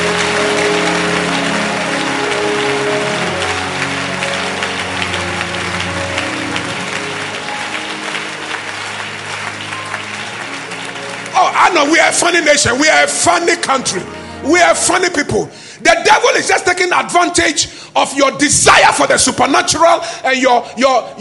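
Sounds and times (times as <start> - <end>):
crowd clapping hands: 0.0 - 14.2
speech: 11.8 - 21.1.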